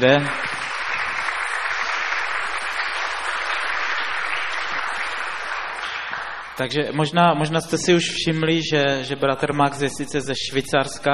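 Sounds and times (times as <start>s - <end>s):
speech: 0.0s - 0.4s, 6.6s - 11.1s
audience applause: 0.0s - 6.6s.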